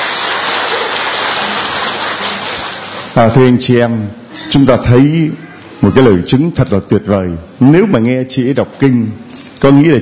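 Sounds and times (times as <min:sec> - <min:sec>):
audience applause: 0:00.0 - 0:03.6
speech: 0:03.2 - 0:10.0.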